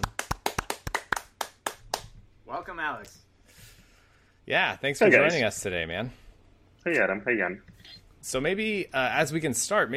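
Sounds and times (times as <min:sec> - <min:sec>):
round of applause, sharp crisp hand claps: 0:00.0 - 0:02.2
speech: 0:02.5 - 0:03.3, 0:04.5 - 0:06.2, 0:06.8 - 0:09.9.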